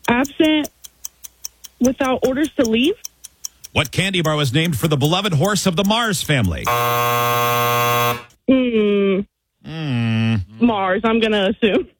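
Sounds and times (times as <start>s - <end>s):
speech: 0.2s - 0.8s, 1.8s - 3.1s, 3.7s - 11.9s
quiz time-up buzzer: 6.6s - 8.4s.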